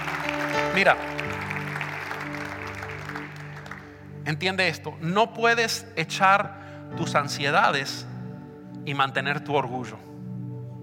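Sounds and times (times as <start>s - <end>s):
church congregation clapping in praise of the Lord: 0.0s - 4.2s
speech: 0.8s - 1.3s, 4.3s - 8.1s, 8.8s - 10.1s.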